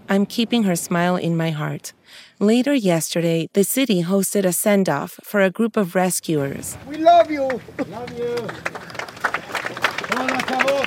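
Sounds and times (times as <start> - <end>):
speech: 0.1 - 9.0, 10.1 - 10.8
crowd clapping at a send-off: 6.9 - 10.8.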